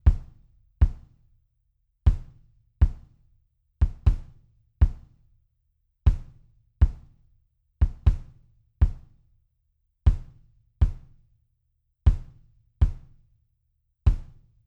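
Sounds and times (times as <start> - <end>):
kick drum: 0.0 - 1.4, 2.0 - 5.4, 6.1 - 9.3, 10.1 - 11.4, 12.1 - 13.4, 14.1 - 14.6.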